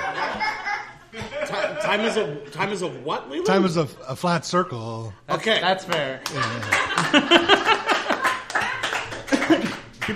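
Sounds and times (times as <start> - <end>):
laughter: 0.0 - 2.6, 6.2 - 10.1
speech: 1.7 - 7.6
applause: 6.2 - 10.1.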